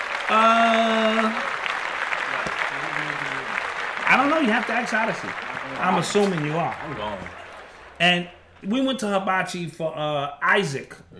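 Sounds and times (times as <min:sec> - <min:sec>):
hands clapping: 0:00.0 - 0:08.7
speech: 0:00.3 - 0:00.6, 0:04.3 - 0:07.4, 0:08.0 - 0:11.1.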